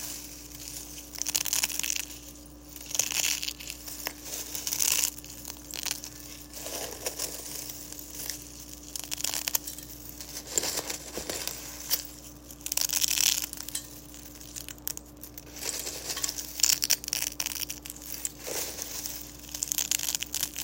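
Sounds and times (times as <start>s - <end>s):
eggshells crushed with crackling: 0.0s - 20.6s
faint steady hum: 0.0s - 20.6s.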